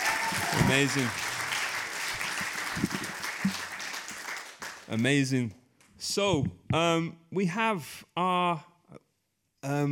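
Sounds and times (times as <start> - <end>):
faint voices or cheers: 0.0 - 1.2
crowd clapping: 0.0 - 5.4
speech: 0.3 - 1.3, 4.9 - 8.7, 9.6 - 9.9.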